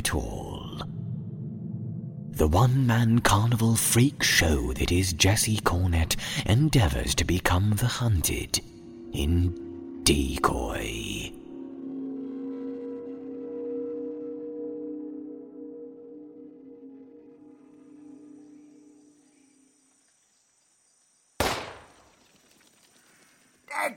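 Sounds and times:
speech: 0.0s - 0.5s, 2.4s - 11.4s
gunshot fired at squirrels booming through the trees: 21.4s - 22.1s.

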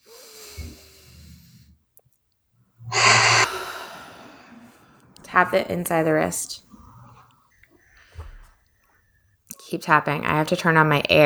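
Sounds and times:
person taking a deep breath during a tapping exercise: 2.9s - 4.6s
speech: 5.4s - 6.7s, 9.7s - 11.2s.

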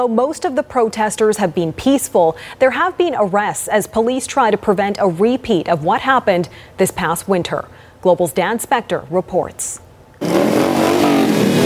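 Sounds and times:
speech: 0.0s - 10.5s
hundreds of motorcycles rumbling through Ottawa: 10.2s - 11.6s.

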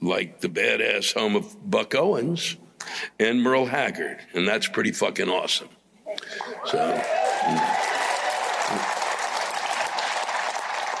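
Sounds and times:
speech: 0.1s - 7.9s
small audience clapping at a live show: 6.6s - 10.9s.

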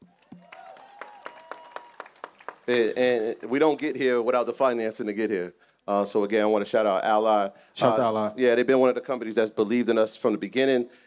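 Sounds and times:
audience applause: 0.0s - 3.5s
speech: 2.7s - 11.0s.

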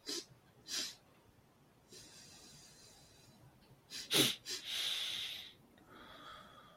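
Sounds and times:
Taoist double-breath exercise nasal breathing: 1.9s - 6.7s.

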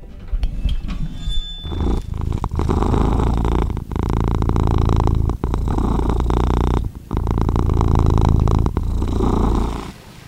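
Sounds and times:
faint high squeaks: 0.6s - 2.6s
domestic cat purring while held in a lap: 1.6s - 10.0s.

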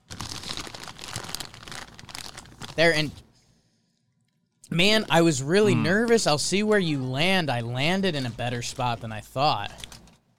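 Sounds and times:
plastic snack bag crinkling: 0.0s - 3.0s
speech: 2.8s - 3.2s, 4.7s - 9.9s.

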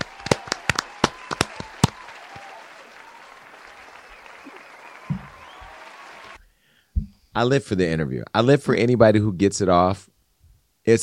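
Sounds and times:
audience clapping: 0.0s - 6.4s
speech: 7.4s - 10.1s.

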